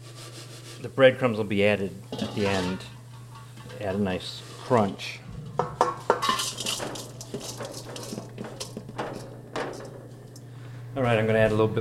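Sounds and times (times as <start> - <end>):
soft sizzling hiss: 0.0 - 11.4
speech: 0.8 - 3.0, 3.8 - 5.7, 11.0 - 11.7
metal pan and utensils clattering while sautéing: 2.1 - 10.5
steady low hum: 5.2 - 11.7.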